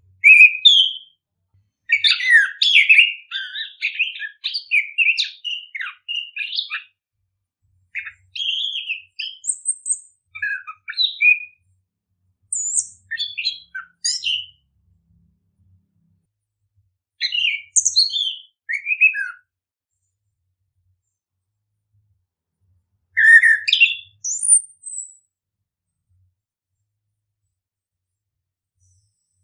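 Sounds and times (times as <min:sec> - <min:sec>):
bird singing chirps and whistles: 0:00.0 - 0:01.2, 0:01.9 - 0:07.0, 0:07.9 - 0:11.7, 0:12.5 - 0:14.7, 0:17.2 - 0:19.5, 0:23.2 - 0:25.3.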